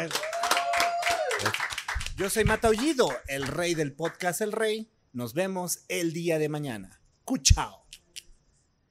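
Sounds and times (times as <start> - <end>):
speech: 0.0 - 0.2, 2.2 - 7.8
audience applause: 0.0 - 4.3.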